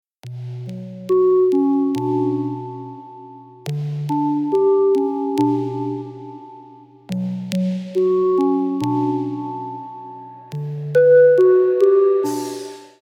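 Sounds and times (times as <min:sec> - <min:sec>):
instrumental type beat: 0:00.2 - 0:13.0.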